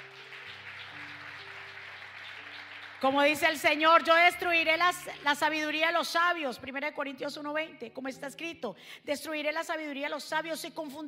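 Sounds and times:
audience applause: 0.0s - 3.8s
speech: 3.0s - 11.0s.

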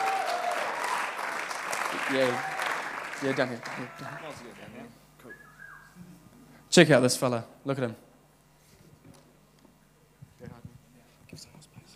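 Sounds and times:
audience clapping: 0.0s - 4.8s
speech: 2.1s - 2.5s, 3.2s - 5.4s, 6.7s - 8.1s.

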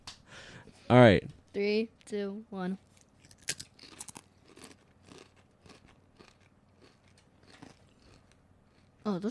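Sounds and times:
speech: 0.9s - 2.9s, 9.1s - 9.2s
crunching Spicy Pineapple Jalapeno Doritos chips: 2.9s - 9.0s.

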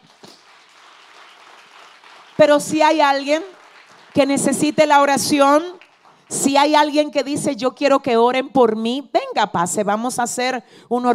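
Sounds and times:
audience applause: 0.0s - 6.4s
speech: 2.4s - 3.6s, 4.2s - 11.1s.

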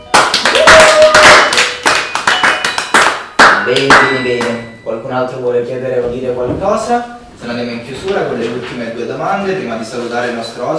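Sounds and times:
audience applause: 0.1s - 3.2s
speech: 3.7s - 10.7s.

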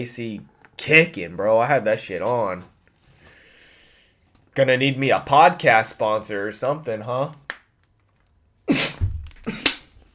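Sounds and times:
speech: 0.0s - 2.7s, 4.6s - 7.4s
person coughing while drinking water: 8.7s - 9.8s.

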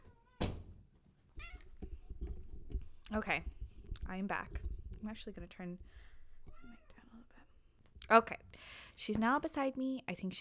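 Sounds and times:
door closing: 0.0s - 0.8s
speech: 3.1s - 6.1s, 8.1s - 10.3s.

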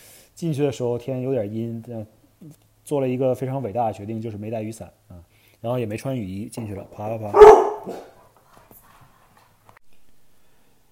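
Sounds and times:
steady low hiss: 0.0s - 10.9s
speech: 0.4s - 8.1s
dog barking at people outside door: 7.3s - 8.2s
dog yelping and whimpering: 7.4s - 8.1s.

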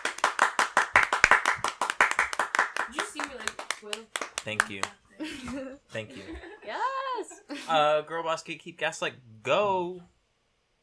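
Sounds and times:
hand clapping: 0.0s - 5.1s
speech: 3.8s - 10.1s
laughter: 5.2s - 7.9s.

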